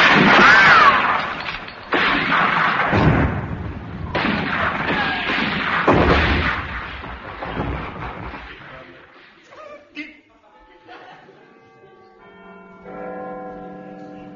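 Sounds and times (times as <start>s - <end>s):
heavy gunfire volleys opening a battle: 0.0s - 9.5s
laughter: 9.5s - 12.1s.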